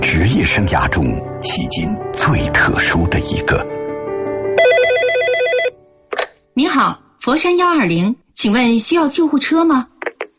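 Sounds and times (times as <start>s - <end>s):
speech: 0.3s - 3.8s, 6.6s - 9.9s
telephone ringing: 4.6s - 5.8s.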